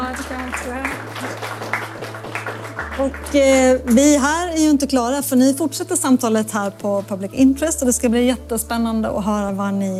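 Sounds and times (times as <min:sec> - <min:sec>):
audience applause: 0:00.0 - 0:03.6
speech: 0:03.0 - 0:09.9.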